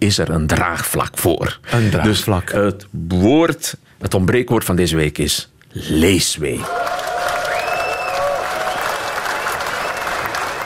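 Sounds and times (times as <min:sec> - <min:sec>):
speech: 0:00.0 - 0:07.0
audience applause: 0:06.6 - 0:10.6.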